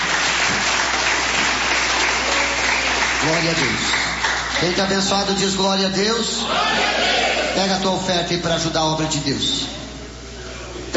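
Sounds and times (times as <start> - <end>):
congregation applauding a preacher during a church service: 0.0 - 5.5
speech: 3.2 - 9.8.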